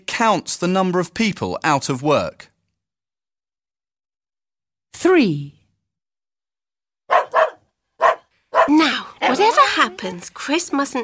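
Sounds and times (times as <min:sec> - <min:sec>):
speech: 0:00.2 - 0:02.5, 0:05.0 - 0:05.6, 0:08.7 - 0:11.0
dog barking in a flat: 0:07.1 - 0:08.8.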